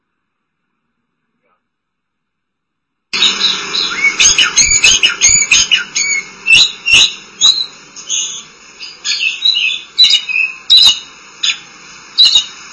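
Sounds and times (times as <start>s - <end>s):
Oriental magpie-robin song: 3.2s - 11.0s
steady high tones: 3.2s - 12.7s.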